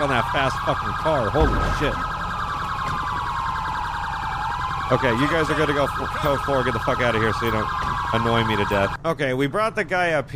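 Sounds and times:
speech: 0:00.0 - 0:02.1, 0:04.9 - 0:10.3
police car siren stuck on: 0:00.0 - 0:09.0
low rumbling hum: 0:01.3 - 0:06.2.

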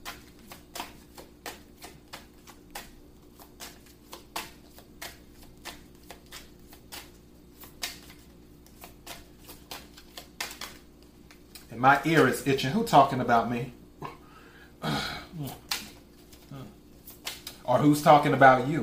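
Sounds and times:
tarot cards being shuffled and drawn for a reading: 0:00.0 - 0:12.5, 0:15.4 - 0:18.8
speech: 0:11.8 - 0:13.8, 0:17.7 - 0:18.8.

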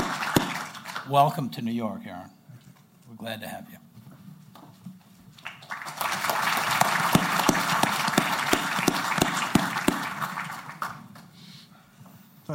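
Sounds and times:
audience applauding a newly signed New York Jets player: 0:00.0 - 0:01.2, 0:05.4 - 0:11.3
speech: 0:01.1 - 0:02.4, 0:03.1 - 0:03.8.

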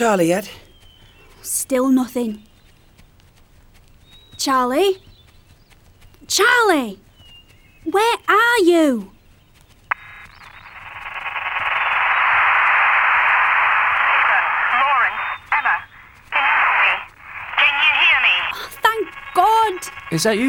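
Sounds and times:
speech: 0:00.0 - 0:00.6, 0:01.4 - 0:02.5, 0:04.4 - 0:05.1, 0:06.3 - 0:07.0, 0:07.8 - 0:09.2, 0:20.2 - 0:20.4
voice over crackly bad phone line: 0:11.0 - 0:20.4.

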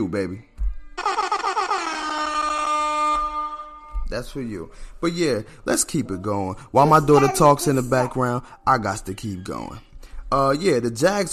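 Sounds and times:
speech: 0:00.0 - 0:00.5, 0:04.1 - 0:11.3
air horn sound effect: 0:01.0 - 0:04.1.

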